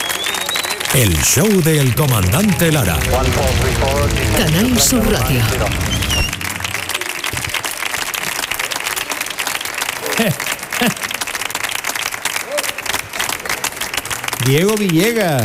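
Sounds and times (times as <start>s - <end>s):
faint voices and cheers: 0.0s - 10.4s
sustained applause from a large audience: 0.0s - 15.4s
speech: 0.9s - 6.3s, 10.2s - 11.1s, 14.4s - 15.4s.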